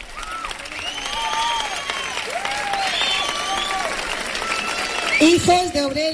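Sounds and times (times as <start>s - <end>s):
audience applause: 0.0s - 6.1s
speech: 5.2s - 6.1s.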